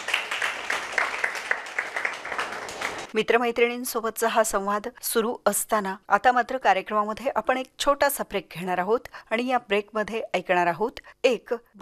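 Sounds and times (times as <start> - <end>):
audience clapping for a young woman after her talk about yoga: 0.0 - 3.1
speech: 3.1 - 11.8.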